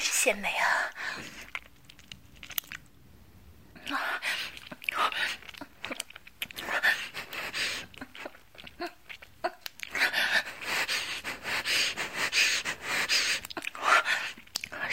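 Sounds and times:
speech: 0.2 - 1.4
people slurping and sucking while eating clams: 3.8 - 14.8.

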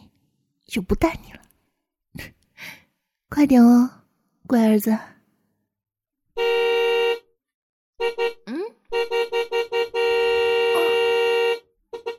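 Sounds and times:
speech: 0.7 - 1.4, 2.2 - 2.4, 3.3 - 5.1
car horn honking: 6.4 - 7.3, 8.0 - 12.1.

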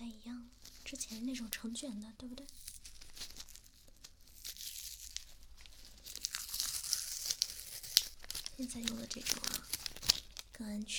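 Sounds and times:
speech: 0.9 - 2.8, 8.6 - 9.8, 10.6 - 10.9
post-injection adhesive tape being peeled off: 2.4 - 10.6.

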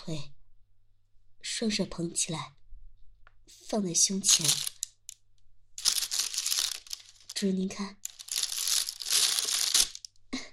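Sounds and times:
speech: 0.0 - 0.4, 1.6 - 2.6, 3.7 - 4.7, 7.4 - 8.0
plastic bag crinkling while being handled: 4.2 - 4.9, 5.8 - 10.1.

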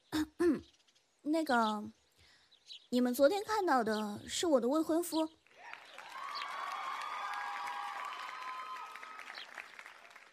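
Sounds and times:
speech: 1.3 - 2.0, 2.7 - 5.4
group of people cheering and clapping: 5.5 - 10.3
whoops: 5.6 - 9.6.

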